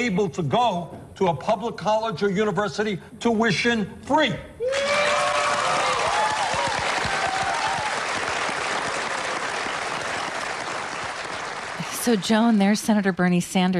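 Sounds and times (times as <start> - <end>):
speech: 0.0 - 4.9, 12.0 - 13.7
audience clapping at a speech: 4.7 - 13.4.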